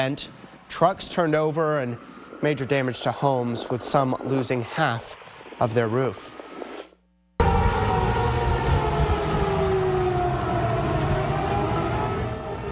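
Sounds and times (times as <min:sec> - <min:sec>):
speech: 0:00.0 - 0:06.4
tornado warning siren wailing: 0:07.4 - 0:12.6.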